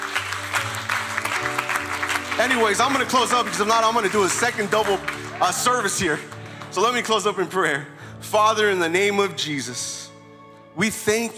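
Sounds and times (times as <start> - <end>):
audience applause: 0.0 - 7.5
speech: 2.4 - 10.0, 10.8 - 11.3.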